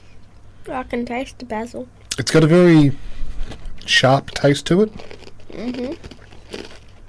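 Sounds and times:
speech: 0.7 - 3.1, 3.9 - 6.1
crunchy bread being bitten and chewed: 4.3 - 7.0.

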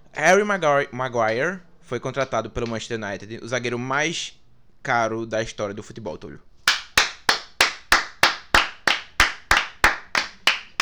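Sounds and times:
speech: 0.2 - 6.5
hands clapping: 6.7 - 10.8.

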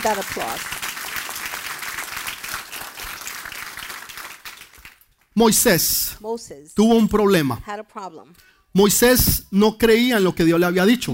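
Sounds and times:
speech: 0.0 - 0.8, 5.4 - 11.1
audience applause: 0.0 - 5.1.

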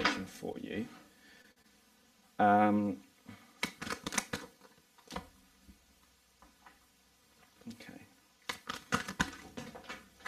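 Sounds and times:
speech: 0.4 - 1.0, 2.4 - 3.0
tarot cards rustling and flicking out of a pack: 3.6 - 5.4, 8.4 - 10.2.

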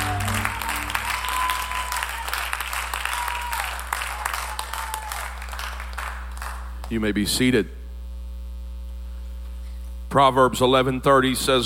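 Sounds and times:
audience hand clapping: 0.0 - 7.0
speech: 6.9 - 7.8, 10.1 - 11.6.

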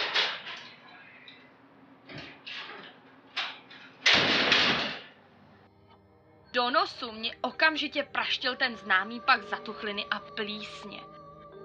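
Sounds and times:
heavy metal door opening: 3.4 - 5.1
speech: 6.6 - 11.2.

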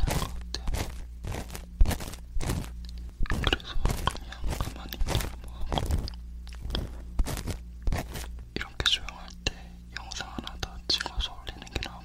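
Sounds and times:
faint whispering: 0.0 - 0.9, 3.4 - 6.0, 8.5 - 12.0
soft rustling brushing: 0.0 - 8.4
wooden ear pick scraping: 0.0 - 8.5
steady low hum: 0.0 - 12.0.

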